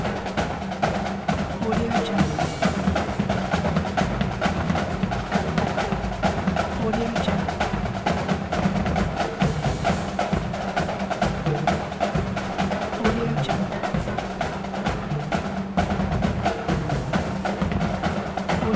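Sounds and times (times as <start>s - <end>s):
human sounds at a marching band parade: 0.0s - 18.7s
marching band playing in a parade: 0.0s - 18.7s.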